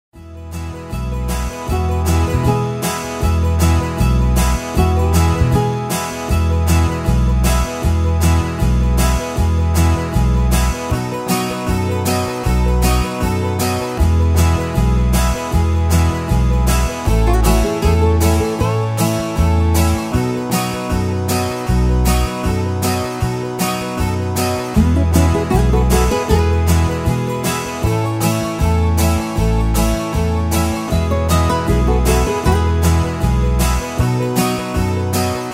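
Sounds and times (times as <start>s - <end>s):
instrumental music: 0.2s - 35.5s.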